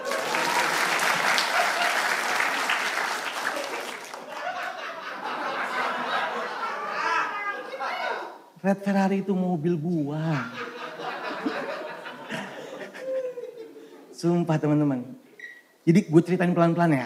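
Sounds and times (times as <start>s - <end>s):
audience laughter and chatter: 0.0s - 2.4s, 3.5s - 8.3s, 10.4s - 14.2s
crowd applauding: 0.0s - 5.0s
speech: 8.6s - 10.7s, 14.2s - 15.2s, 15.9s - 17.0s.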